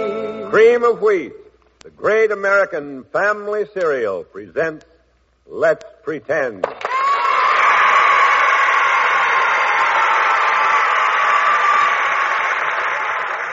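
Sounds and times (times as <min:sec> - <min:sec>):
speech: 0:00.5 - 0:04.9, 0:05.5 - 0:06.9
studio audience applause and cheering in welcome: 0:06.7 - 0:13.5.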